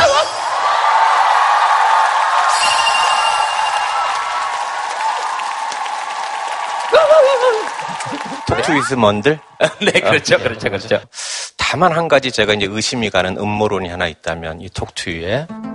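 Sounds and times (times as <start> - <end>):
studio audience applause: 0.5 - 10.0
laughter: 7.0 - 8.9, 9.6 - 10.9
speech: 8.6 - 15.7.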